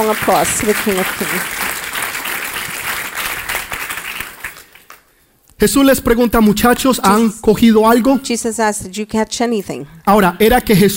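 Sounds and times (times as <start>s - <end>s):
speech: 0.0s - 1.7s, 5.6s - 10.9s
audience applause: 0.0s - 5.0s.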